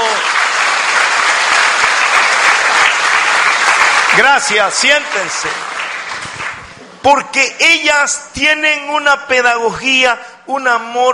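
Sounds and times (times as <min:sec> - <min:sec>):
audience applause: 0:00.0 - 0:06.8
speech: 0:04.2 - 0:05.6, 0:07.0 - 0:11.1.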